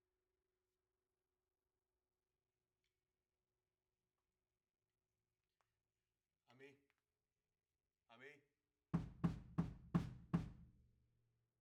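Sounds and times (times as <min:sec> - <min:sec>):
overhead drum cymbals: 0:09.0 - 0:10.6.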